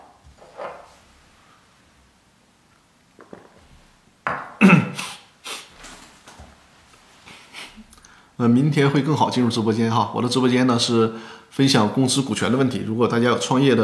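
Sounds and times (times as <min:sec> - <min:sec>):
cup being handled while taking a drink of water: 0:03.2 - 0:03.6, 0:04.2 - 0:04.6
speech: 0:08.4 - 0:13.8.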